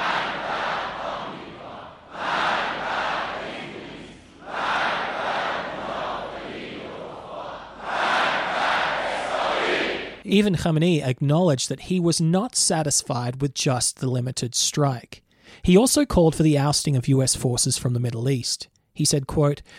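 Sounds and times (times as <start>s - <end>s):
large crowd chanting slogans in unison at a rally: 0.0s - 10.2s
speech: 10.3s - 19.7s.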